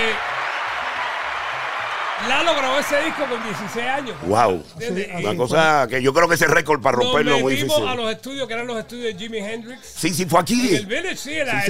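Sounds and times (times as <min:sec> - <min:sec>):
applause sound effect: 0:00.0 - 0:04.6
speech: 0:02.2 - 0:11.6.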